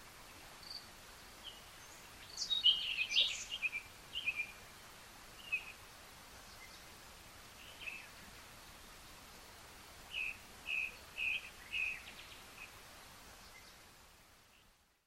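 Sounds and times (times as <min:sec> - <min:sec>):
Common nightingale Luscinia megarhynchos singing: 0:00.3 - 0:04.7, 0:05.4 - 0:05.8, 0:07.6 - 0:08.2, 0:10.1 - 0:12.8.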